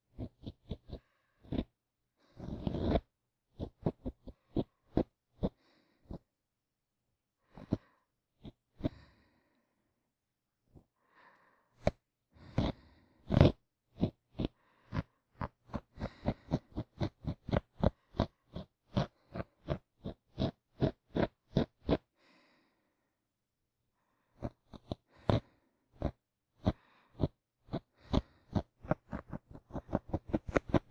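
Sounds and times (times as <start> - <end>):
sleeping breath for restful sleep: 0.8 - 6.3, 7.4 - 10.0, 10.8 - 23.2, 23.9 - 30.9
ear cleaning sounds on the left: 2.3 - 6.3, 11.8 - 22.2, 24.4 - 30.9.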